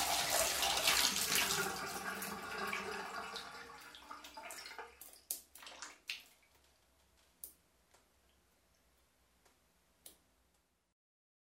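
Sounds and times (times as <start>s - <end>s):
water running in the shower: 0.0s - 6.7s.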